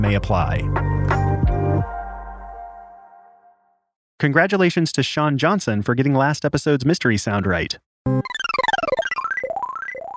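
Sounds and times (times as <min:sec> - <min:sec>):
speech: 0:00.0 - 0:00.9, 0:04.2 - 0:08.4
psychic shield move sound effect from Super Nintendo game Earthbound: 0:08.1 - 0:10.1.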